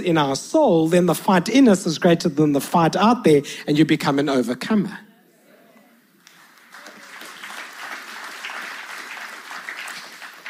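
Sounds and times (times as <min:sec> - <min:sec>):
speech: 0:00.0 - 0:05.1
crowd applause: 0:06.3 - 0:10.4.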